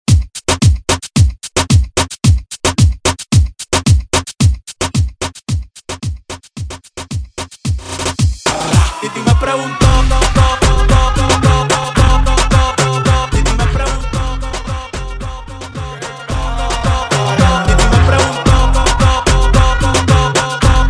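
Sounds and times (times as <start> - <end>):
breakbeat intro at 111 BPM: 0.1 - 20.8.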